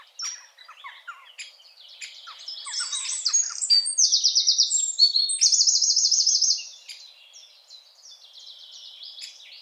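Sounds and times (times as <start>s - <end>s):
Eurasian wren Troglodytes troglodytes singing trills and twitters: 0.0s - 9.6s.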